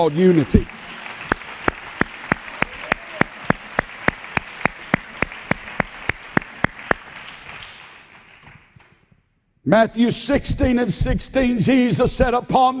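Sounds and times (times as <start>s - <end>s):
speech: 0.0s - 0.8s, 9.7s - 12.7s
audience clapping hands: 0.0s - 9.1s.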